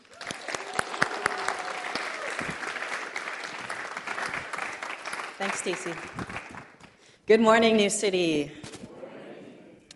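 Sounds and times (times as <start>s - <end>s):
audience applauding to welcome a guest speaker: 0.0s - 7.0s
speech: 5.4s - 6.5s, 7.3s - 8.6s.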